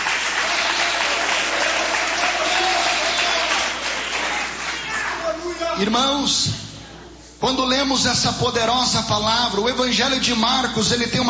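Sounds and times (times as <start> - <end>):
audience applauding: 0.0 - 5.6
speech: 5.8 - 6.7, 7.4 - 11.2.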